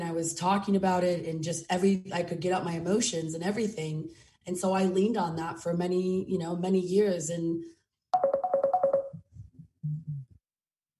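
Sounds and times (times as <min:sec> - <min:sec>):
speech: 0:00.2 - 0:08.3
phone notification tone: 0:08.2 - 0:09.3.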